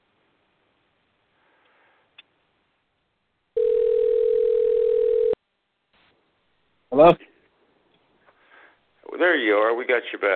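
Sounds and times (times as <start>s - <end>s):
telephone ringing on outgoing call: 3.6s - 5.4s
speech: 7.0s - 7.3s, 9.4s - 10.3s.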